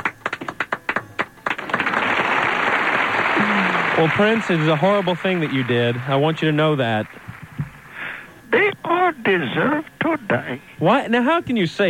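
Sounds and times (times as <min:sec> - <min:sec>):
applause: 0:00.0 - 0:07.6
speech: 0:04.0 - 0:07.3, 0:09.1 - 0:11.8.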